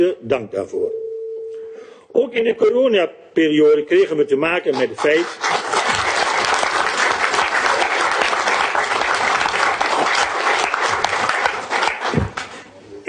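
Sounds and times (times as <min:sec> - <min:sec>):
speech: 0:00.0 - 0:01.0, 0:01.8 - 0:05.7
audience applause: 0:04.8 - 0:12.6.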